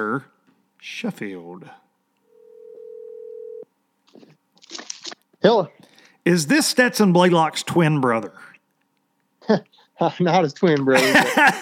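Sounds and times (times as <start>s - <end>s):
speech: 0.0s - 1.8s, 5.4s - 8.5s, 9.5s - 11.5s
telephone ringing tone while placing a call: 2.3s - 3.7s
laughter: 10.9s - 11.5s.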